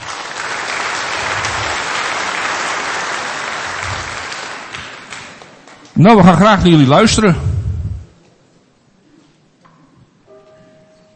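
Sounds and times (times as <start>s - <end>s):
audience applause: 0.0s - 6.4s
speech: 6.0s - 7.5s.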